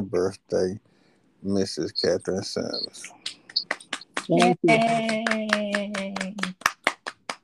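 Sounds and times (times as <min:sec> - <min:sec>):
speech: 0:00.0 - 0:03.2, 0:04.3 - 0:06.7
audience clapping for a birthday: 0:03.2 - 0:07.4
person cheering: 0:04.3 - 0:05.3.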